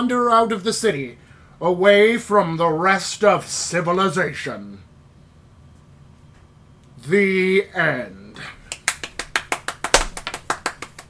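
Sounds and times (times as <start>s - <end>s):
speech: 0.0s - 4.9s, 7.0s - 8.6s
hand clapping: 8.7s - 11.0s.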